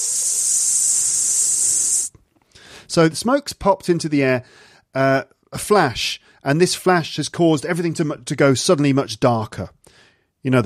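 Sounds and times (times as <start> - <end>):
airy high-pitched hiss: 0.0 - 2.2
speech: 2.9 - 9.8, 10.4 - 10.6.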